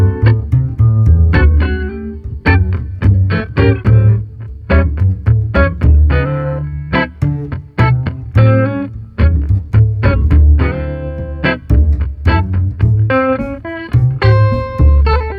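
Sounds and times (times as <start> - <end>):
street funky guitar trio: 0.0 - 15.3.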